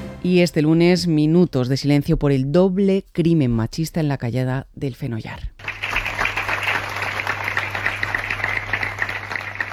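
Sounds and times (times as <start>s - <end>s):
speech: 0.3s - 5.6s
townspeople applauding: 5.6s - 9.7s.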